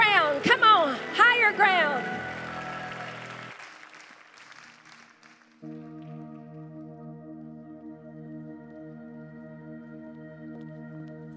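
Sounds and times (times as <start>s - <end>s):
audience applauding and clapping: 0.0s - 6.2s.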